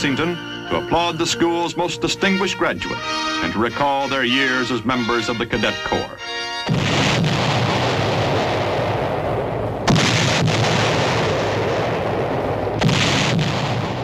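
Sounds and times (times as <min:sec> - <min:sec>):
speech: 0:00.0 - 0:06.9
howitzer salute firing: 0:06.3 - 0:14.0.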